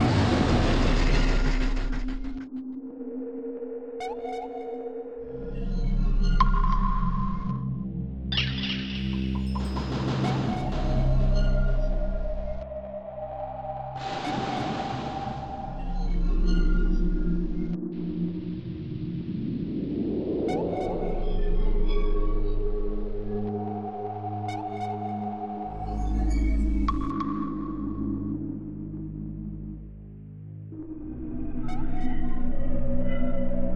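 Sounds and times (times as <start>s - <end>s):
deep chill tension music loop: 0.0s - 33.7s.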